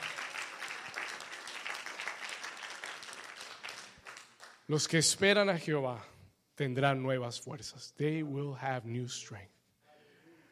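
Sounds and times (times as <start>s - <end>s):
audience applause: 0.0s - 4.6s
speech: 4.7s - 9.6s.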